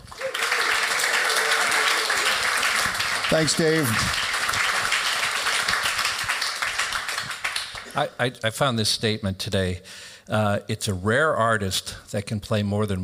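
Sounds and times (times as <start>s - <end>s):
large audience applause: 0.0s - 8.0s
speech: 3.3s - 4.3s, 8.0s - 13.0s.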